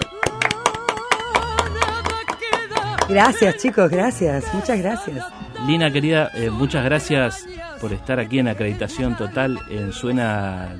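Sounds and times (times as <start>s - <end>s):
audience applause: 0.0s - 4.0s
speech: 3.1s - 10.7s.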